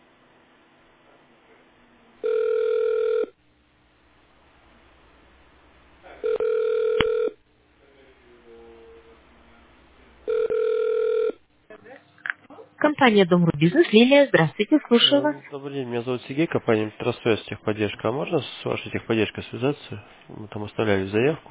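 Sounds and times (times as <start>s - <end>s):
telephone ringback tones: 2.2s - 3.4s, 6.2s - 7.4s, 10.3s - 11.4s
speech: 12.9s - 21.5s.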